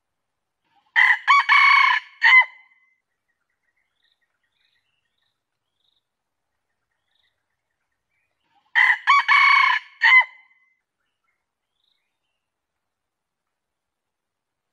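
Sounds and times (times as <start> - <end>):
junglefowl crowing: 1.0 - 2.6, 8.7 - 10.5.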